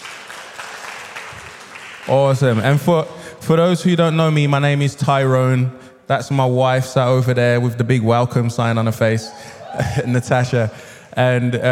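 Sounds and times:
audience round of applause: 0:00.0 - 0:02.6
speech: 0:02.1 - 0:11.7.

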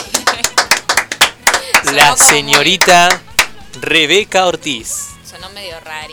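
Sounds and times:
applause: 0:00.0 - 0:03.5
speech: 0:01.9 - 0:06.1.

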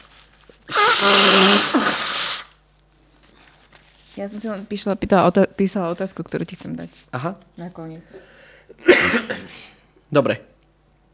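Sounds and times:
nose blowing: 0:00.6 - 0:02.6
speech: 0:04.2 - 0:10.5.

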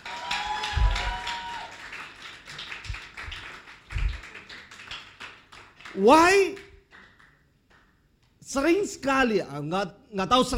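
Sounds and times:
crowd clapping: 0:00.0 - 0:08.0
speech: 0:06.0 - 0:06.6, 0:08.5 - 0:10.5.

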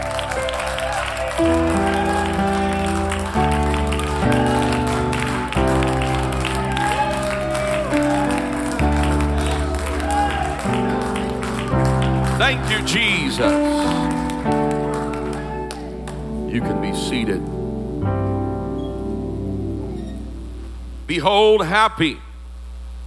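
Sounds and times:
audience clapping hands in a steady rhythm: 0:00.0 - 0:17.5
loud sustained music: 0:00.0 - 0:20.6
speech: 0:01.4 - 0:02.0, 0:12.5 - 0:14.0, 0:16.6 - 0:18.2, 0:21.1 - 0:22.2.

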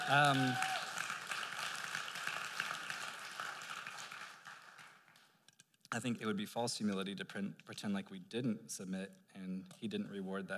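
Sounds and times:
audience clapping: 0:00.0 - 0:05.4
speech: 0:00.1 - 0:00.7, 0:06.0 - 0:10.5.

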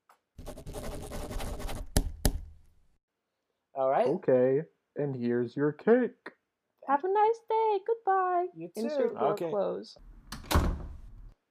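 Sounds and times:
pen scratching out signatures on paper: 0:00.4 - 0:02.0
speech: 0:03.8 - 0:10.1.

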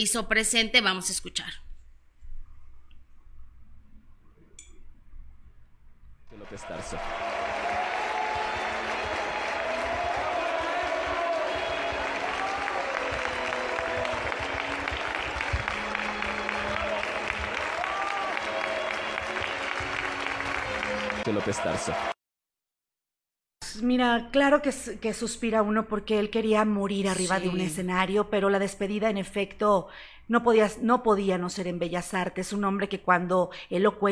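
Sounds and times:
speech: 0:00.0 - 0:01.6, 0:06.5 - 0:07.3, 0:21.2 - 0:22.1, 0:23.8 - 0:34.1
large crowd applauding at a funeral: 0:06.3 - 0:22.2
scattered shouts: 0:07.0 - 0:14.3.

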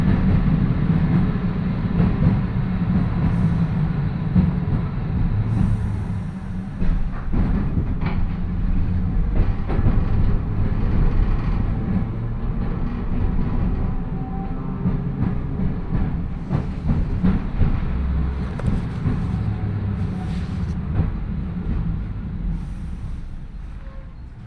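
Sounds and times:
rail clicks and rattles: 0:00.0 - 0:22.2
electric train with nose-suspended traction motors growling: 0:00.0 - 0:24.4.

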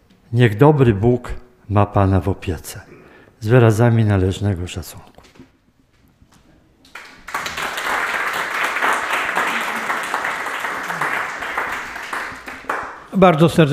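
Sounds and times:
speech: 0:00.3 - 0:05.1, 0:13.2 - 0:13.7
audience applause: 0:06.9 - 0:13.1.

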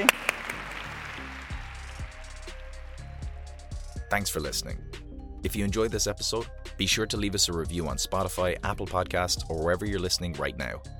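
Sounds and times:
crowd applause: 0:00.0 - 0:02.7
speech: 0:04.1 - 0:10.9.

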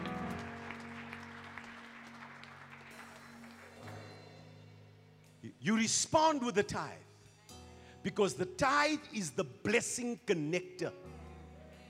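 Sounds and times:
crowd clapping: 0:00.0 - 0:04.4
speech: 0:05.4 - 0:07.1, 0:08.0 - 0:11.2.

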